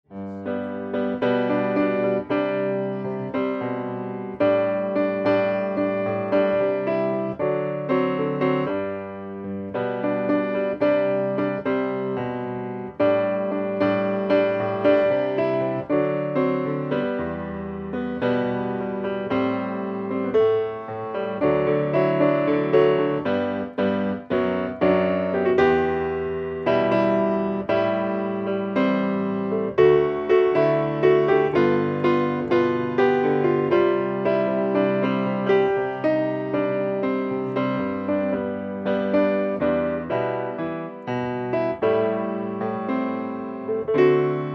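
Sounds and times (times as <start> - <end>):
piano playing: 0.1 - 44.5.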